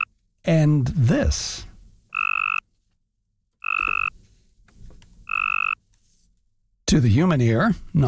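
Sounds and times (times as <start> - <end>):
speech: 0.4 - 1.7, 6.9 - 8.0
Cope's gray tree frog mating call trills: 2.1 - 2.6, 3.6 - 4.1, 5.3 - 5.8.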